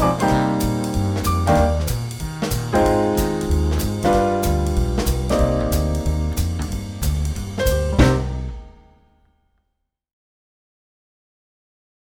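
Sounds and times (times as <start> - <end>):
minor jazz groove backing with wind instruments: 0.0 - 8.9.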